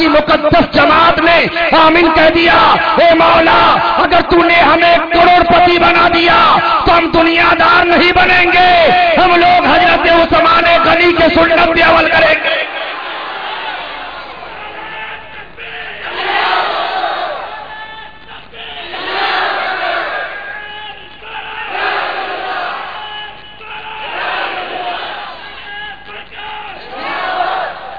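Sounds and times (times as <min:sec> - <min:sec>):
speech: 0:00.0 - 0:12.6
crowd at a religious gathering chanting a slogan: 0:12.4 - 0:17.7, 0:18.7 - 0:20.6, 0:21.3 - 0:23.1, 0:23.7 - 0:25.7, 0:26.5 - 0:27.9.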